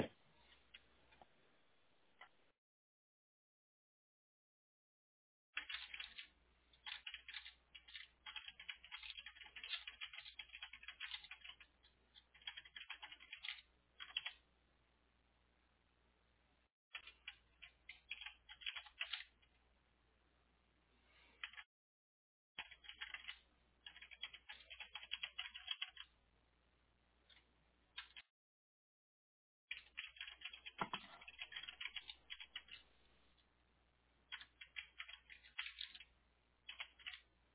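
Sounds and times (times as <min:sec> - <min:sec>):
keyboard typing: 0:05.6 - 0:14.4, 0:16.9 - 0:19.4, 0:21.4 - 0:21.7, 0:22.6 - 0:26.1, 0:27.3 - 0:28.3, 0:29.7 - 0:32.9, 0:34.3 - 0:37.3.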